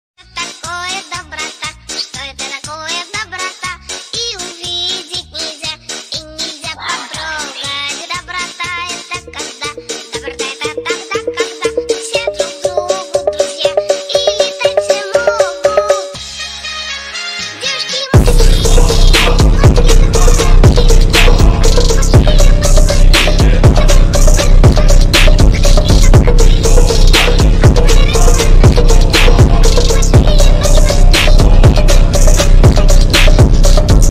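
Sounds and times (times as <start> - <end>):
phonk remix: 6.9 - 16.5, 18.1 - 34.0.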